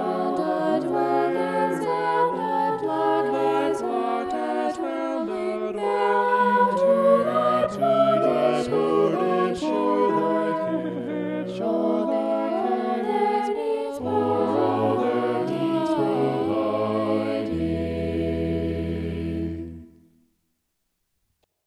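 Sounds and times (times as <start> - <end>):
polyphonic vocals: 0.0 - 19.9.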